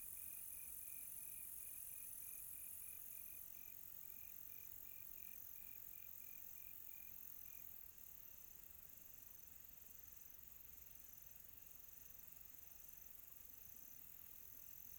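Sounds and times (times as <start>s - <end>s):
cricket chirping on a quiet tropical night: 0.0s - 14.9s.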